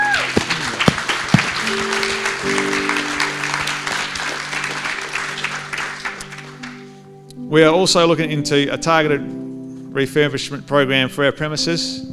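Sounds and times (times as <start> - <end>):
audience clapping: 0.0 - 7.1
speech: 7.5 - 9.4, 10.0 - 12.1.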